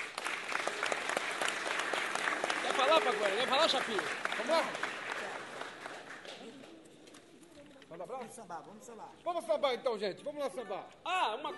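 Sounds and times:
audience applause: 0.0s - 6.7s
speech: 3.0s - 5.0s, 8.0s - 11.5s.

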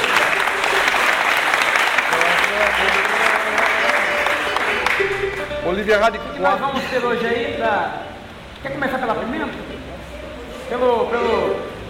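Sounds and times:
audience applause: 0.0s - 5.8s
speech: 5.8s - 9.6s, 10.7s - 11.6s.

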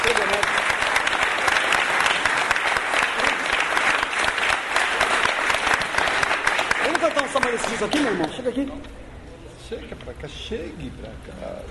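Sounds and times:
audience applauding: 0.0s - 8.5s
speech: 7.7s - 9.0s, 9.7s - 11.6s.

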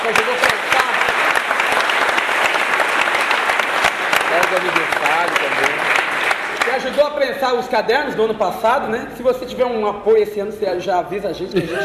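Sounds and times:
audience applause: 0.0s - 7.2s
speech: 6.8s - 11.8s.

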